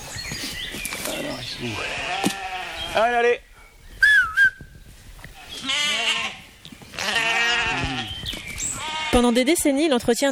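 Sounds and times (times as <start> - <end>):
speech: 1.6 - 2.1, 2.9 - 3.5, 9.2 - 10.3
sheep bleating: 1.6 - 3.2, 5.4 - 9.6
short rising whistle: 4.0 - 4.6.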